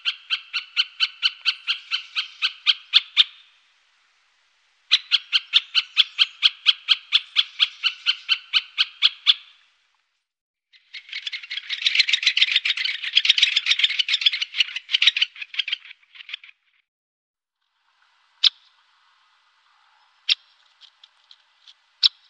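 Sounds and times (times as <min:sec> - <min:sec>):
great spotted woodpecker calling sharp kik notes: 0:00.0 - 0:03.6, 0:04.9 - 0:09.6, 0:10.8 - 0:16.6, 0:18.4 - 0:18.8, 0:19.7 - 0:22.2.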